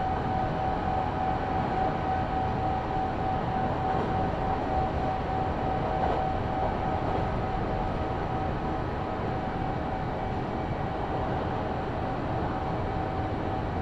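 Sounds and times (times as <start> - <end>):
Kintetsu Osaka Line express train wheels and motor rumbling: 0.0 - 13.0
thin constant whine: 0.0 - 13.8.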